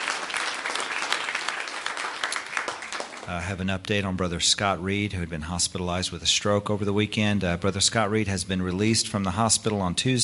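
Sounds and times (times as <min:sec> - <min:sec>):
audience clapping hands in praise: 0:00.0 - 0:03.6
speech: 0:03.3 - 0:10.2.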